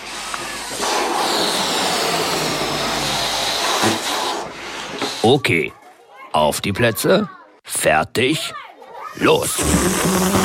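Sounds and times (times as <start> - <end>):
released balloons whizzing through the air: 0.0 - 5.3, 9.5 - 10.4
speech: 5.2 - 8.6, 9.2 - 10.4.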